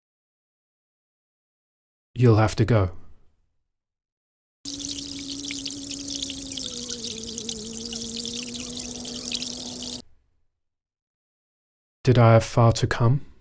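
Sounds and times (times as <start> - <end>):
speech: 2.2 - 3.0, 12.1 - 13.3
tap water running while washing hands: 4.7 - 10.0.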